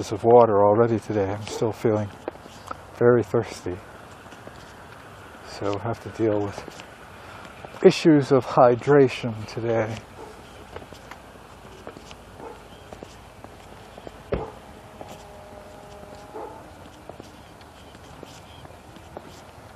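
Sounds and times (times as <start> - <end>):
speech: 0.0 - 2.3, 3.0 - 3.9, 5.6 - 6.9, 7.8 - 10.1
footsteps walking along a park path: 0.0 - 19.7.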